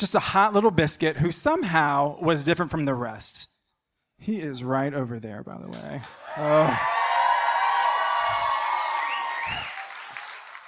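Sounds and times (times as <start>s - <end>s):
speech: 0.0s - 3.5s, 4.2s - 7.1s
audience applause: 6.0s - 10.6s
audience whoops and cheers: 6.2s - 10.6s.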